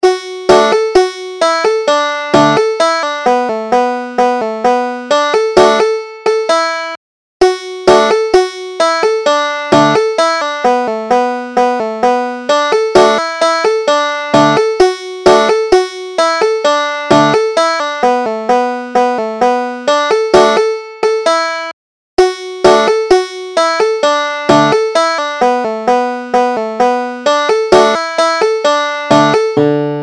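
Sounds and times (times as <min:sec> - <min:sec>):
banjo: 0:00.0 - 0:30.0.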